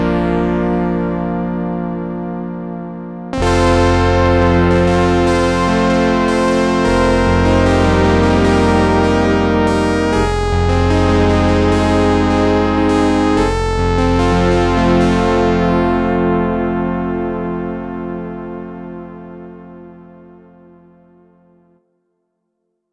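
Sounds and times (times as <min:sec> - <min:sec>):
keyboard playing: 0:00.0 - 0:17.3.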